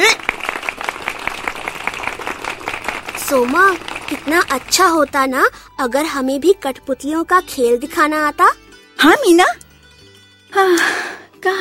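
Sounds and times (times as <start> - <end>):
people clapping: 0.0 - 5.5
speech: 3.3 - 9.6, 10.5 - 11.5.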